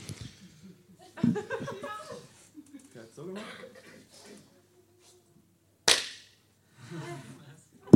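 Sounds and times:
laughter: 0.9s - 3.0s, 6.8s - 7.5s
hand clap: 5.9s - 6.3s.

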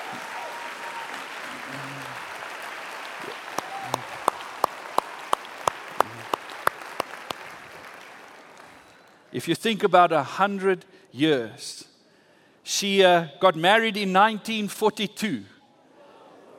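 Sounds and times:
audience applause: 0.0s - 9.1s
speech: 9.4s - 11.9s, 12.7s - 15.5s.

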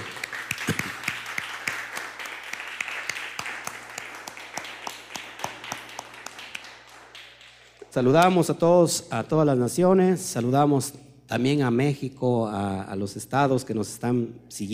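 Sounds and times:
audience applause: 0.0s - 7.8s
speech: 8.0s - 14.7s.

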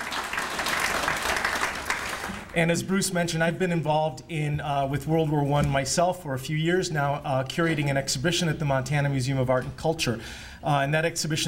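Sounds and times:
audience applause: 0.0s - 2.6s
speech: 2.6s - 11.4s.

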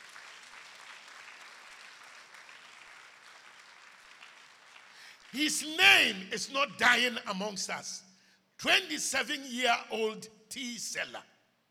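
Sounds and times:
audience clapping: 0.0s - 6.2s
speech: 5.3s - 11.3s.

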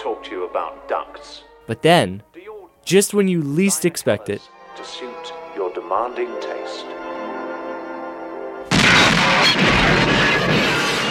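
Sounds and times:
speech: 0.5s - 7.0s
bomb explosion in a terrorist attack in the film Brazil: 8.7s - 11.0s.

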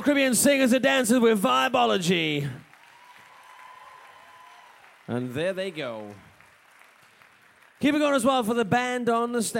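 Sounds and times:
speech: 0.0s - 2.6s, 5.1s - 6.3s, 7.8s - 9.5s
sizable audience applauding performers: 2.4s - 8.4s.

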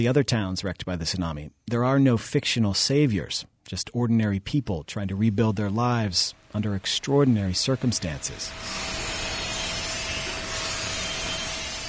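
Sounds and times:
speech: 0.0s - 9.0s
workers grinding welds on a smokestack in a metal shop: 6.8s - 11.8s.

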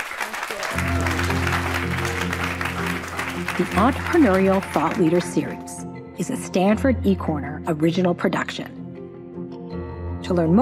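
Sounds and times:
audience applause: 0.0s - 5.8s
speech: 3.6s - 8.8s, 10.3s - 10.6s.

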